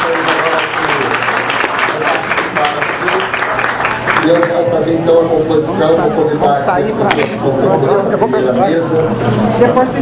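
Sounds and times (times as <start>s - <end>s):
applause from the table: 0.0s - 4.7s
faint murmur of voices: 0.0s - 9.9s
speech: 4.3s - 9.9s.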